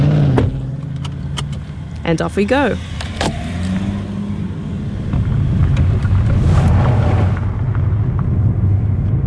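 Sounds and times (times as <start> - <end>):
car engine and road rumble driving through Gore's farmlands: 0.0 - 9.2
speech: 2.1 - 3.0
wind buffeting: 2.4 - 9.2.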